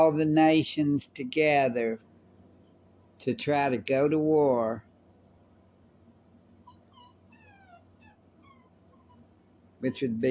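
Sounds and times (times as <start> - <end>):
speech: 0.0 - 2.1, 3.2 - 4.9, 9.8 - 10.2
steady low hum: 0.0 - 10.2
little dogs yipping and whimpering next door: 6.6 - 9.3.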